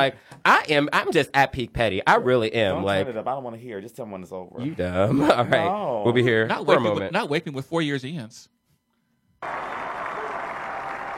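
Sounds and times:
speech: 0.0s - 8.6s, 9.4s - 9.7s
audience clapping: 9.4s - 11.1s.

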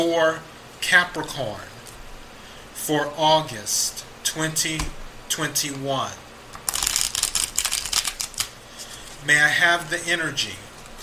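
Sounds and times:
speech: 0.0s - 1.7s, 2.8s - 6.2s, 9.2s - 10.6s
playing cards being shuffled for a Capricorn reading: 6.6s - 9.2s.

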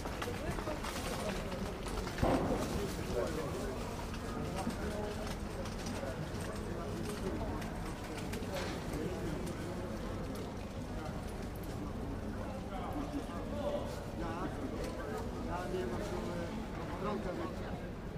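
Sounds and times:
crowd chatter at a busy fruit market: 0.0s - 18.1s.

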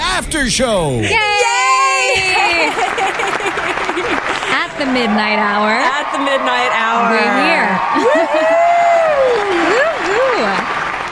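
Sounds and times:
speech: 0.2s - 8.6s
laughter: 1.1s - 4.6s, 7.5s - 8.8s
audience applause: 1.6s - 11.1s.

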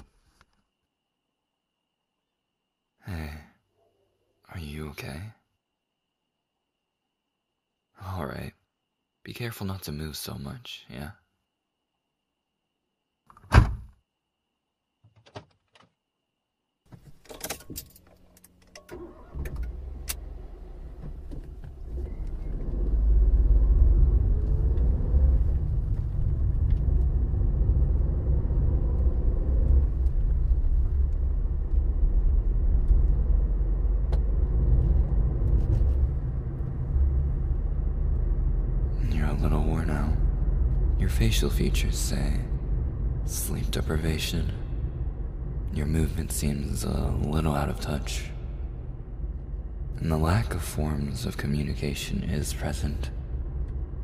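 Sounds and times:
speech: 4.6s - 5.4s, 8.0s - 8.6s, 9.2s - 11.2s, 41.4s - 42.6s, 43.3s - 44.7s, 45.8s - 48.3s, 50.0s - 53.2s
car engine starting and driving: 16.9s - 54.0s.

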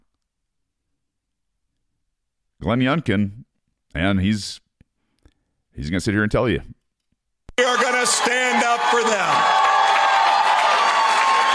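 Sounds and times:
speech: 2.6s - 4.6s, 5.8s - 6.8s, 7.6s - 9.7s
crowd cheering and applauding: 7.6s - 11.5s.

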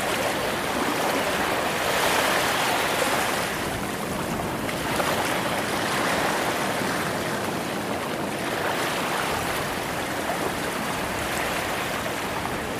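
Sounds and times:
ocean waves: 0.0s - 12.7s.

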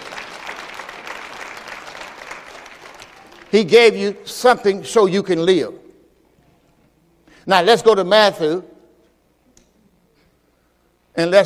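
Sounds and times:
audience clapping hands: 0.0s - 3.9s
speech: 3.5s - 5.8s, 7.4s - 8.7s, 11.2s - 11.4s.

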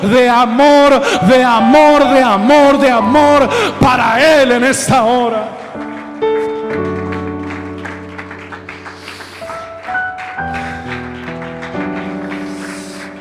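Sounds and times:
speech: 0.0s - 5.6s
sustained organ-like keyboard chords: 0.0s - 7.4s
audience applauding: 0.1s - 13.2s.

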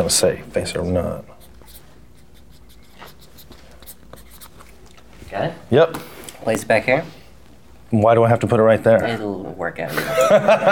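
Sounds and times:
speech: 0.0s - 1.4s, 5.3s - 7.2s, 7.9s - 10.7s
pen scratching across a playing card: 1.3s - 5.0s
laughter: 9.9s - 10.7s.

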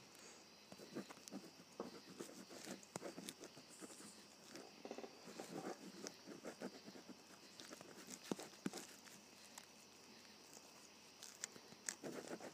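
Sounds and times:
faint steady hiss: 0.0s - 12.5s
ballpoint pen writing on paper: 0.8s - 4.7s, 5.3s - 9.0s, 11.9s - 12.5s.

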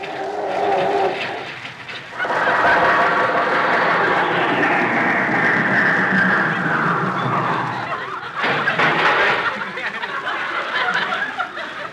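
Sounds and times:
old car engine failing to start, made by a human voice: 0.6s - 9.4s
laughter: 2.2s - 5.0s, 6.8s - 11.9s.

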